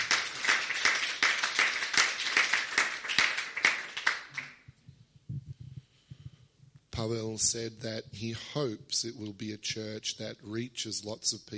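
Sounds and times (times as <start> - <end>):
audience applause: 0.0 - 4.6
speech: 7.0 - 11.5.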